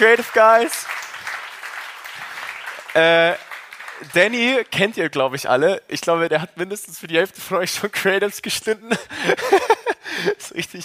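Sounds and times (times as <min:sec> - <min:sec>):
speech: 0:00.0 - 0:01.0, 0:02.9 - 0:10.8
audience applause: 0:00.0 - 0:04.7
laughter: 0:08.9 - 0:10.6.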